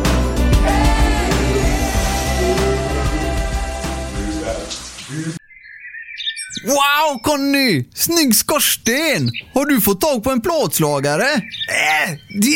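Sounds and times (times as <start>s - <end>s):
shower water running: 0.6s - 5.4s
speech: 6.6s - 12.5s.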